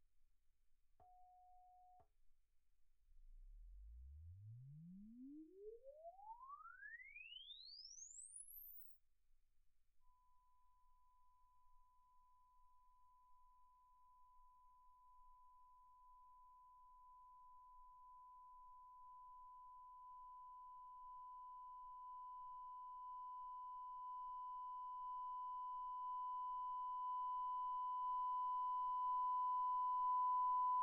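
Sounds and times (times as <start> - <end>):
calibration measurement signal: 3.2 - 8.9, 18.0 - 30.8.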